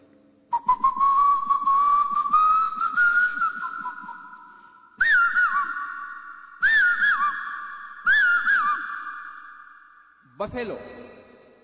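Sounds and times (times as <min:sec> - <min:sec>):
person whistling a bird call: 0:00.5 - 0:09.8
speech: 0:10.4 - 0:11.0.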